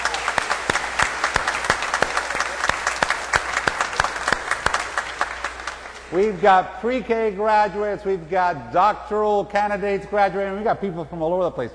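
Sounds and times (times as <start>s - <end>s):
round of applause: 0.0s - 6.3s
speech: 6.1s - 11.7s.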